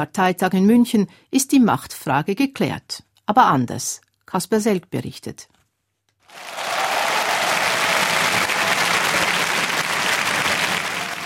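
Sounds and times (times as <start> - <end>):
speech: 0.0 - 5.6
standing ovation applause at party conference: 6.2 - 11.2.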